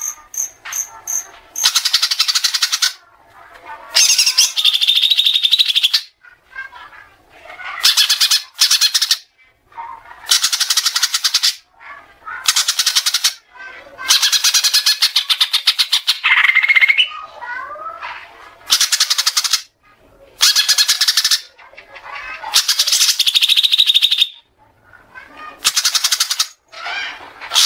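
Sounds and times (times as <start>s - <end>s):
Oriental magpie-robin song: 0.0s - 3.0s, 3.9s - 6.2s, 7.8s - 9.3s, 10.3s - 11.6s, 12.4s - 17.1s, 18.7s - 19.7s, 20.4s - 21.6s, 22.5s - 24.4s, 25.6s - 27.6s.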